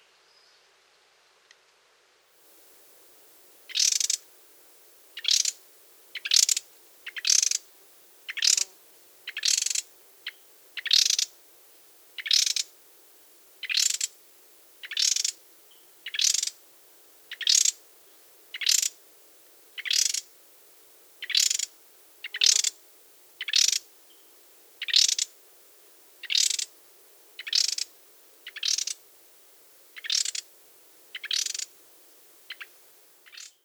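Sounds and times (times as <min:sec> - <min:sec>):
birds of the Costa Rican cloud forest scolding: 0:02.6 - 0:33.6
birds of the Costa Rican cloud forest singing: 0:03.6 - 0:19.0, 0:19.6 - 0:20.4, 0:21.2 - 0:22.8, 0:23.4 - 0:25.4, 0:26.2 - 0:26.7, 0:27.4 - 0:29.0, 0:29.9 - 0:31.8, 0:32.4 - 0:33.6.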